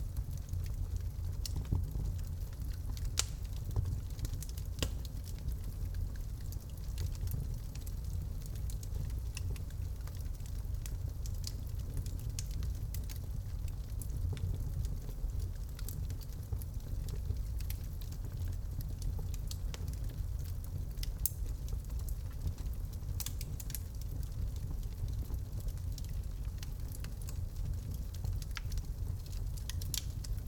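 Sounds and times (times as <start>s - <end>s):
fireplace fire: 0.0s - 30.4s.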